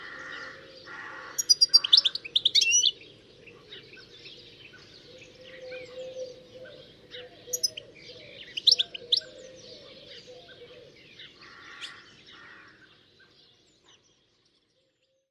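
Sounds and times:
harsh bird calls with sharp high chirps: 0.0s - 14.0s.

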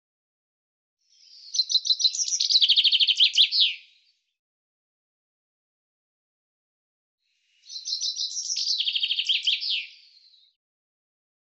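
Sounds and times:
common chaffinch song with fast repeated notes and terminal flourish: 1.1s - 4.0s, 7.6s - 10.6s.

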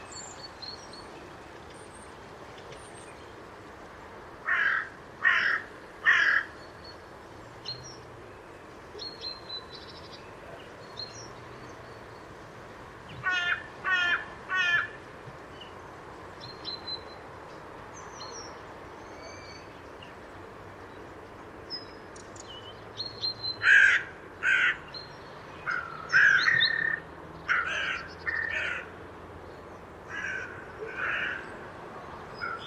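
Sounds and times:
bird cawing: 4.4s - 6.6s, 13.2s - 15.0s, 23.6s - 24.8s, 25.7s - 29.0s, 30.1s - 31.6s.

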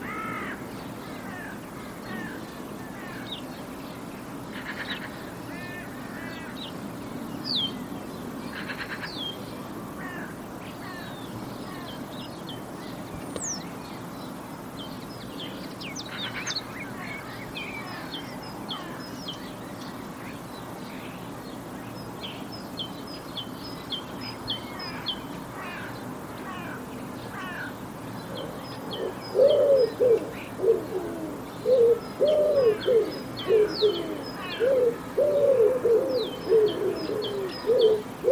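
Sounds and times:
background hiss: 0.0s - 38.3s
birds chirping: 0.0s - 38.3s
bird giving low cooing notes: 28.4s - 38.3s.

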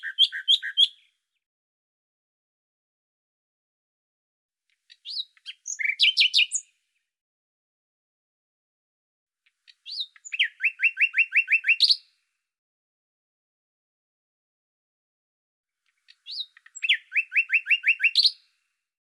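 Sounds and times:
bird song: 0.0s - 1.5s, 4.7s - 7.2s, 9.4s - 12.3s, 15.8s - 18.8s.

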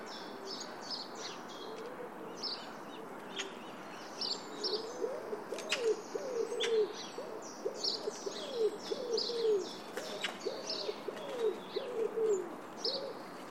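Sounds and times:
bird repeating low hollow hooting notes: 4.6s - 13.2s.

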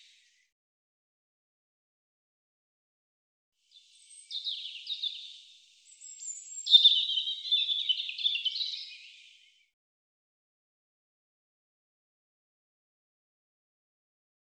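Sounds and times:
European robin singing high tinkling song: 3.7s - 9.6s.

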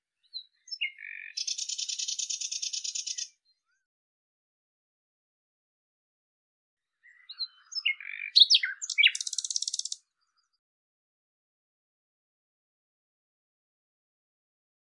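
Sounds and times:
Common nightingale song with chirps and rattling series: 0.3s - 3.4s, 7.0s - 10.0s.

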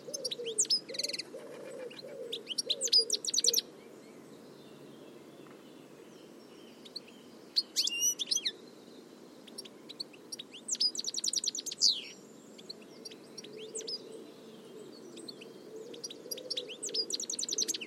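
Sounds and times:
bird chirping in quick bright notes: 0.0s - 17.8s.

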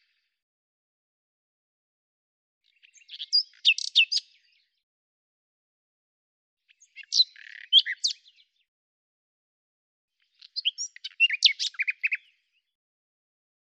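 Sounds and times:
common nightingale singing: 2.6s - 4.6s, 6.7s - 8.5s, 10.4s - 12.6s.

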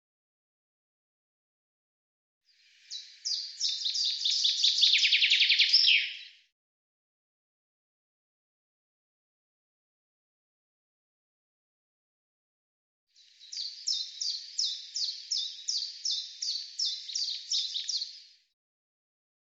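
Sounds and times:
bird song of fast descending trill of sharp notes: 2.6s - 6.5s, 13.2s - 18.4s.

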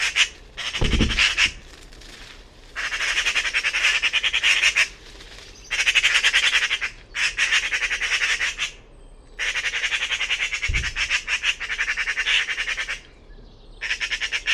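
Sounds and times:
bird uttering harsh grating squawks: 0.0s - 1.6s, 2.8s - 5.0s, 5.6s - 8.8s, 9.4s - 13.0s, 13.8s - 14.5s.

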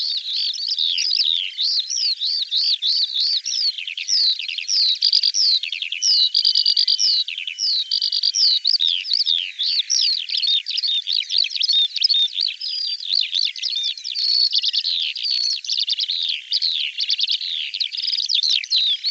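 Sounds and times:
bird song: 0.0s - 19.1s.

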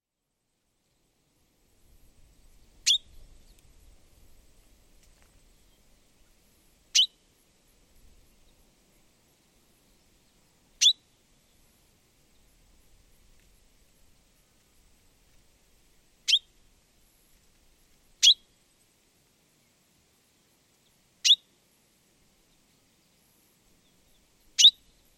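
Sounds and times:
common chaffinch calling: 2.8s - 3.2s, 6.9s - 7.2s, 10.8s - 11.0s, 16.3s - 16.5s, 18.2s - 18.4s, 24.4s - 24.9s.

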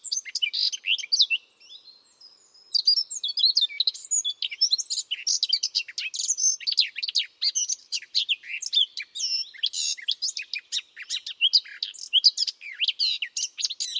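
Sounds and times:
bird chirping: 0.0s - 13.9s.

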